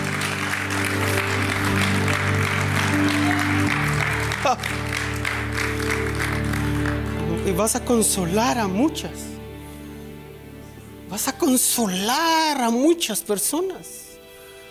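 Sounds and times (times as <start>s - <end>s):
audience clapping: 0.0s - 8.1s
sustained low musical tones: 0.0s - 14.6s
speech: 4.5s - 4.8s, 7.6s - 9.3s, 11.2s - 14.0s.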